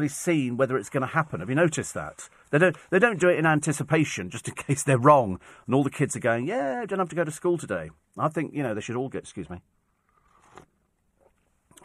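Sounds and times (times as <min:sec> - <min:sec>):
speech: 0:00.0 - 0:09.8
slurping a hot morning drink: 0:09.9 - 0:11.8.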